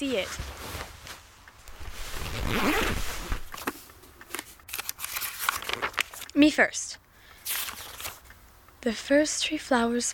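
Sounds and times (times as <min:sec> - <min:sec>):
speech: 0:00.0 - 0:00.8, 0:02.4 - 0:03.2, 0:06.4 - 0:07.0, 0:08.8 - 0:10.1
backpack rustling as it is opened: 0:01.6 - 0:03.8
backpack zipper being opened: 0:01.7 - 0:03.5.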